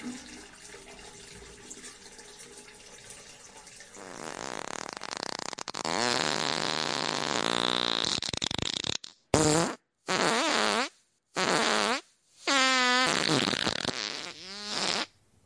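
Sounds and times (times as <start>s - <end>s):
farts: 4.0s - 15.1s.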